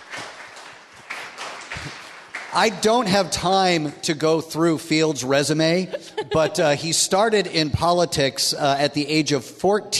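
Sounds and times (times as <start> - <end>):
applause for a speaker at a political event in West Michigan: 0.0 - 3.7
speech: 2.5 - 9.9
laughter: 5.6 - 7.6.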